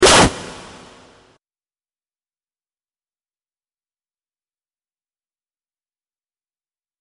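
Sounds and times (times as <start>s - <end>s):
noise blast: 0.0s - 1.3s.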